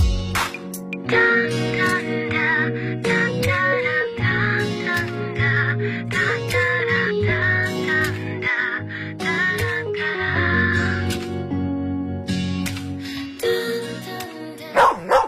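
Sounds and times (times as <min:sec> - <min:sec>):
music: 0:00.0 - 0:15.2
dog barking: 0:14.7 - 0:15.2.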